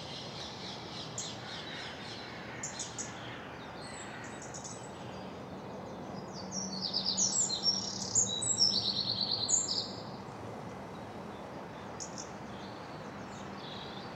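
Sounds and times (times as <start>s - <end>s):
spring morning ambience in South East London: 0.0s - 14.1s.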